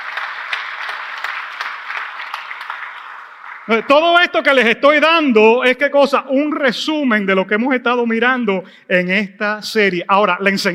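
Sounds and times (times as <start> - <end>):
audience applause: 0.0 - 4.4
speech: 3.7 - 10.7.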